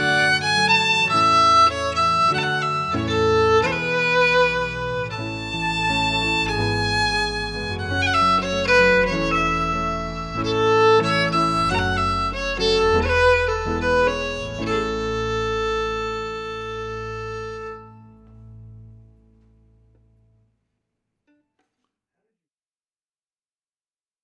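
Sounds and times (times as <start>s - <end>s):
fiddle: 0.0s - 18.5s
piano: 0.0s - 20.5s.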